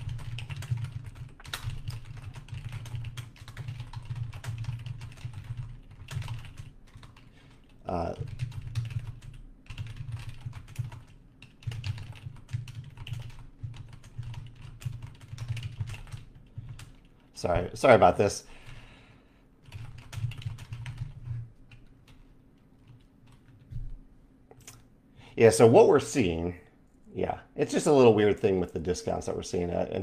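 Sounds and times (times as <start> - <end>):
typing a note on a computer keyboard: 0.0 - 17.1, 19.6 - 22.2
low steady hum: 0.0 - 30.0
speech: 7.9 - 8.3, 17.4 - 18.5, 25.4 - 26.6, 27.2 - 30.0.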